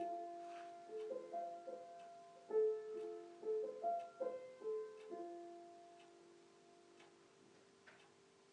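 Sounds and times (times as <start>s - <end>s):
mother playing the piano: 0.0s - 6.0s.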